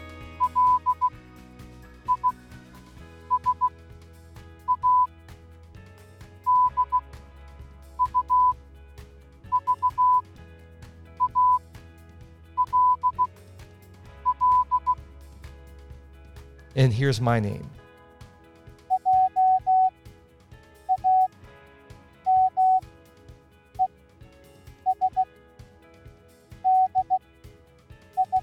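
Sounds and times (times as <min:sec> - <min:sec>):
soft music bed: 0:00.0 - 0:28.4
Morse code beeps spelling a name: 0:00.4 - 0:01.1, 0:02.1 - 0:02.4, 0:03.3 - 0:03.7, 0:04.7 - 0:05.1, 0:06.5 - 0:07.0, 0:08.0 - 0:08.6, 0:09.5 - 0:10.2, 0:11.2 - 0:11.6, 0:12.6 - 0:13.3, 0:14.3 - 0:15.0, 0:18.9 - 0:19.9, 0:20.9 - 0:21.3, 0:22.3 - 0:22.8, 0:24.9 - 0:25.2, 0:26.6 - 0:27.2, 0:28.2 - 0:28.4
speech: 0:16.8 - 0:17.8.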